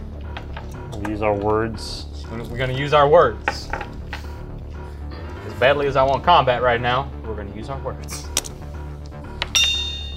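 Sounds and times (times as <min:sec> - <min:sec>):
speech: 0:00.9 - 0:04.0, 0:05.6 - 0:08.3
bright bell ding: 0:09.5 - 0:10.1.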